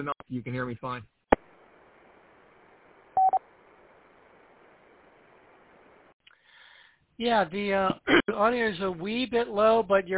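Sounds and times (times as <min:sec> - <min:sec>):
speech: 0:00.0 - 0:01.2, 0:07.2 - 0:10.1
radio roger beep: 0:03.2 - 0:03.4.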